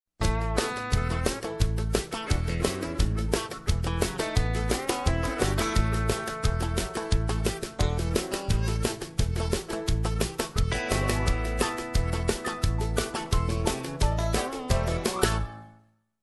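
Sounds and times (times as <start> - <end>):
bluegrass music: 0.2 - 15.7.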